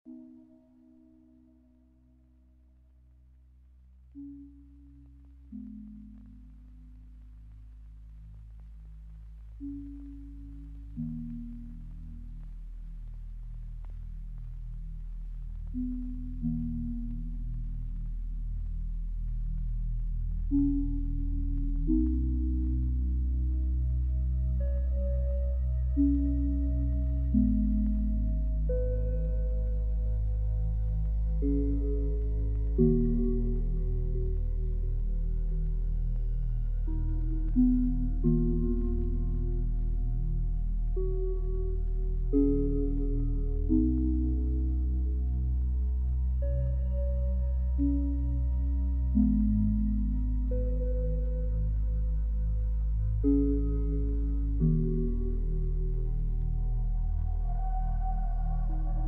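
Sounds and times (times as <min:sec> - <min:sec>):
dark ambient sad music: 0:00.1 - 0:59.0.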